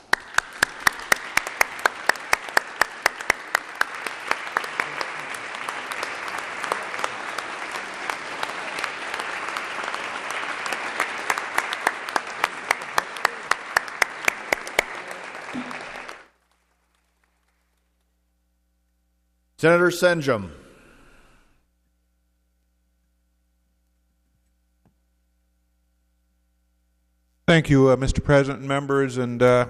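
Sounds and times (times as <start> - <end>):
applause: 0.0 - 18.2
speech: 19.6 - 20.6, 27.6 - 29.6.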